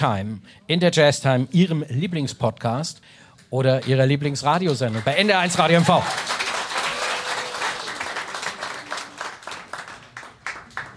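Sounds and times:
speech: 0:00.0 - 0:06.5
live concert audience applause: 0:04.7 - 0:10.9.

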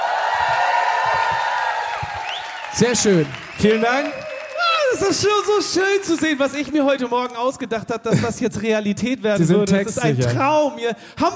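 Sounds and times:
live audience in Hamburg cheering wildly: 0:00.0 - 0:07.5
speech: 0:02.8 - 0:04.3, 0:04.9 - 0:11.3.

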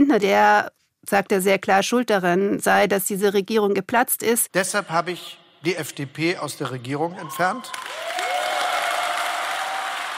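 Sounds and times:
speech: 0:00.1 - 0:08.2
large audience applause at political speech: 0:07.2 - 0:10.1.

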